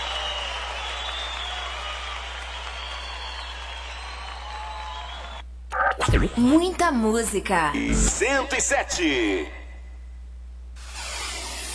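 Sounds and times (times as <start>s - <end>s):
audience applause: 0.0s - 5.4s
speech: 6.2s - 9.6s.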